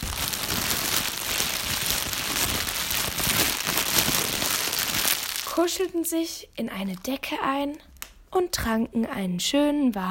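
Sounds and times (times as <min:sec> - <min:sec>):
wood stove fire crackling: 0:00.0 - 0:05.7
speech: 0:05.6 - 0:10.1.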